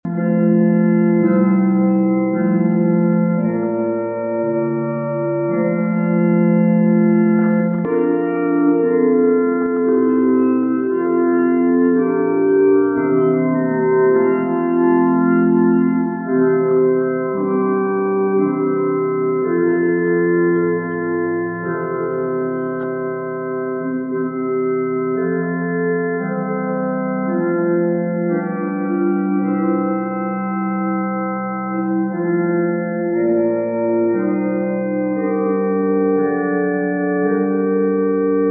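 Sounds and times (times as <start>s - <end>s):
organ: 0.0s - 38.5s.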